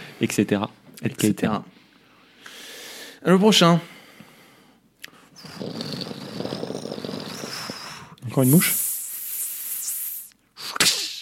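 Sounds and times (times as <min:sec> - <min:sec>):
speech: 0:00.2 - 0:01.8, 0:03.2 - 0:03.9, 0:08.4 - 0:08.8
voice imitating a whip crack: 0:08.3 - 0:11.2.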